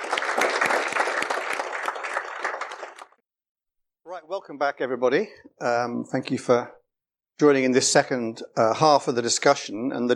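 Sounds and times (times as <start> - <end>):
audience applause: 0.0 - 3.2
speech: 4.2 - 6.8, 7.4 - 10.1.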